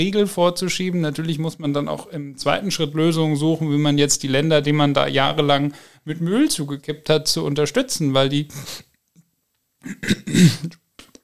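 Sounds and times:
speech: 0:00.0 - 0:08.9, 0:09.8 - 0:10.8
person coughing after choking on a piece of mandarin: 0:09.8 - 0:10.8.

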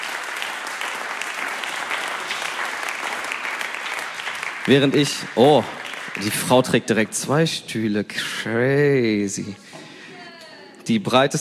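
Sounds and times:
audience applause: 0:00.0 - 0:07.1
speech: 0:04.7 - 0:09.6, 0:10.9 - 0:11.4.

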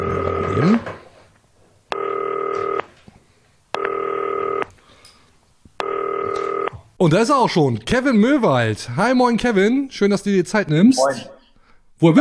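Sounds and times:
phone ringing tones: 0:00.0 - 0:00.8, 0:01.9 - 0:02.9, 0:03.8 - 0:04.7, 0:05.8 - 0:06.8
speech: 0:00.6 - 0:01.0, 0:07.0 - 0:11.4, 0:12.0 - 0:12.1.

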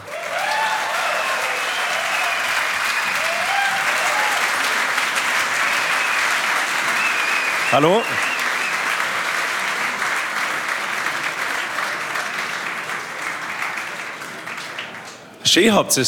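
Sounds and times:
faint cheers or whistles: 0:00.0 - 0:04.7, 0:05.6 - 0:08.9
large audience applause: 0:00.0 - 0:15.4
speech: 0:07.7 - 0:08.3, 0:15.6 - 0:16.0.

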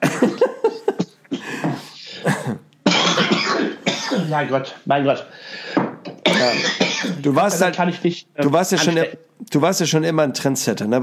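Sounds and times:
person coughing: 0:00.0 - 0:04.4, 0:06.3 - 0:07.6
speech: 0:04.4 - 0:05.8, 0:06.4 - 0:11.0.

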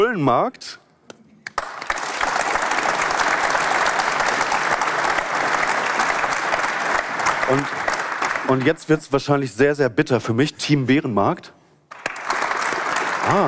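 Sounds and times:
speech: 0:00.0 - 0:00.8, 0:07.5 - 0:07.8, 0:08.5 - 0:11.6, 0:13.3 - 0:13.4
audience applause for a clap vote: 0:01.6 - 0:08.8, 0:11.9 - 0:13.4.

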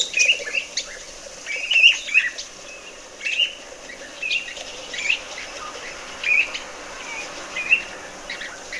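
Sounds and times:
bird song with trills: 0:00.0 - 0:08.7
soft hiss: 0:00.0 - 0:08.7.

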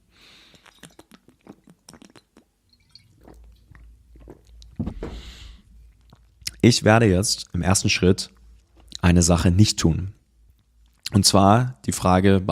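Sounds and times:
person sipping water and swallowing: 0:00.3 - 0:06.6
speech: 0:06.6 - 0:08.4, 0:09.1 - 0:10.2, 0:11.1 - 0:12.5.

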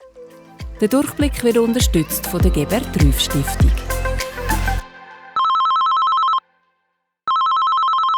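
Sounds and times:
speech: 0:00.8 - 0:03.9
telephone ringing: 0:05.4 - 0:06.4, 0:07.3 - 0:08.1.

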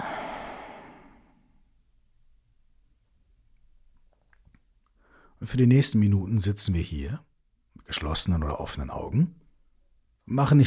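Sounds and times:
exhale through the mouth during a guided breathing exercise: 0:00.0 - 0:01.4
speech: 0:05.4 - 0:07.3, 0:07.9 - 0:09.4, 0:10.3 - 0:10.6.

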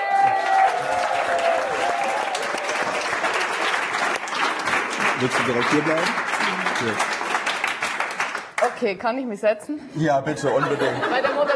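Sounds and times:
crowd applauding: 0:00.0 - 0:08.8
speech: 0:05.2 - 0:07.2, 0:08.8 - 0:11.3
laughter: 0:10.3 - 0:11.5.

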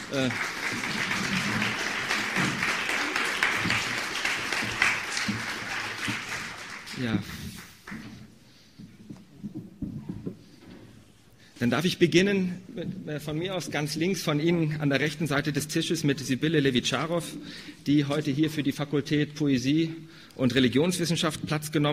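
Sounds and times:
audience applause: 0:00.0 - 0:08.1
speech: 0:00.1 - 0:01.6, 0:07.0 - 0:07.5, 0:11.6 - 0:21.9.

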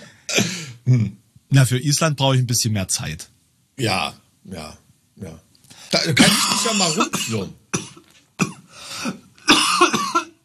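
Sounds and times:
coughing: 0:00.0 - 0:01.2, 0:05.9 - 0:10.4
speech: 0:00.4 - 0:07.6.

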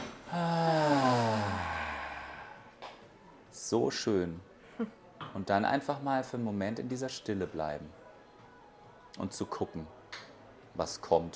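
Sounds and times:
deep breath in: 0:00.3 - 0:02.8
speech: 0:03.7 - 0:08.0, 0:09.2 - 0:10.0, 0:10.8 - 0:11.3.

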